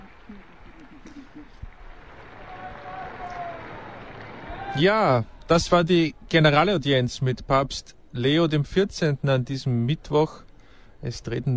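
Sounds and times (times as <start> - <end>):
crowd applause bursting out: 0.0 - 5.2
speech: 4.7 - 11.5.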